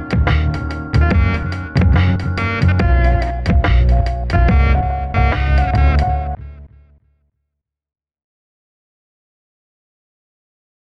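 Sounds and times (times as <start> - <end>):
lo-fi music mix: 0.0 - 6.7.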